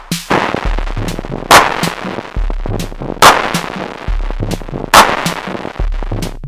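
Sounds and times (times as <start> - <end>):
system noise: 0.3 - 6.4.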